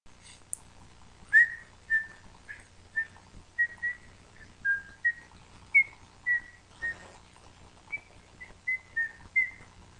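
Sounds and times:
whistle: 1.3 - 7.0, 7.9 - 9.7.

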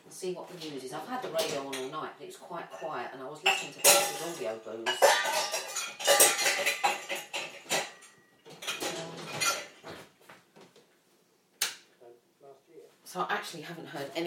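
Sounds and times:
speech: 0.2 - 6.2, 13.2 - 14.2
cups clinking while loading the dishwasher: 2.7 - 10.0.

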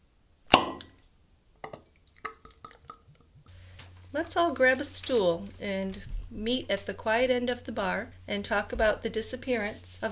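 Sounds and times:
beer being poured into a glass: 1.6 - 3.2
speech: 4.1 - 10.1.

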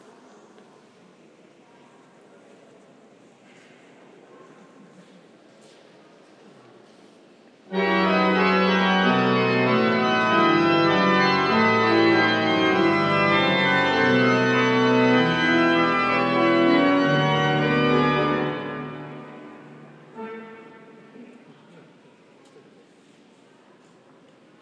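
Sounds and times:
organ practice at Salisbury Cathedral: 7.7 - 21.0.

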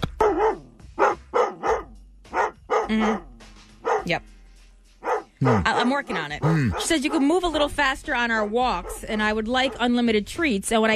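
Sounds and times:
dog barking: 0.1 - 4.1, 5.0 - 7.3, 8.7 - 9.9
speech: 2.9 - 3.3, 4.0 - 4.4, 5.4 - 10.9.

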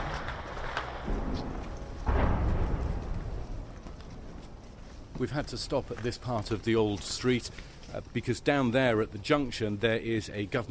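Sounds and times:
battle rumbling from fighting in ancient Aleppo: 0.0 - 4.8
dull booms of battle in ancient Aleppo: 0.0 - 5.2
steady noise: 0.0 - 10.7
speech: 5.2 - 10.7.

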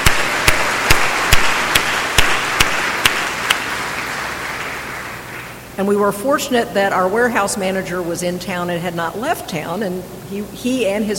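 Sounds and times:
slow rhythmic audience clapping: 0.0 - 5.6
hiss: 0.0 - 11.1
speech: 5.8 - 11.1.

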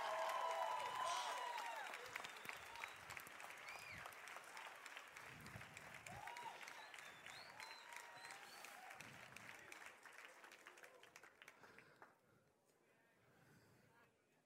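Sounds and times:
scattered cheers and voices: 0.0 - 4.6, 6.0 - 9.2
audience applause: 0.0 - 12.1.

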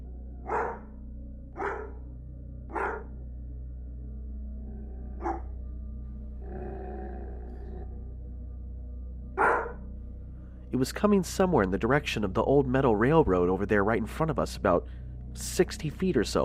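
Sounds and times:
dogs sounding like they are being attacked: 2.7 - 3.1, 5.2 - 5.5
speech: 10.7 - 16.4.

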